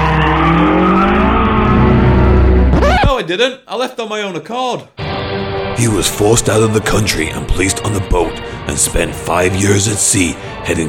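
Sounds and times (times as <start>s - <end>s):
car engine roaring speeding along a town high street: 0.0s - 3.1s
car tires screeching: 0.0s - 3.1s
speech: 3.3s - 10.8s.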